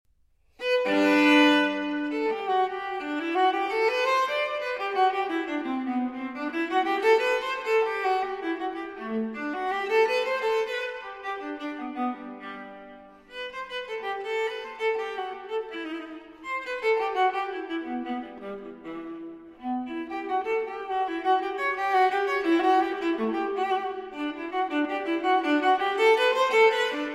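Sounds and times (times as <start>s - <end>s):
viola allemande in G major: 0.5s - 27.1s.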